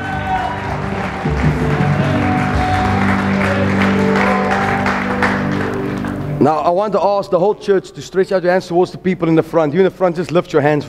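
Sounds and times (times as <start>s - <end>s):
audience clapping: 0.0s - 6.4s
speech: 6.4s - 10.8s.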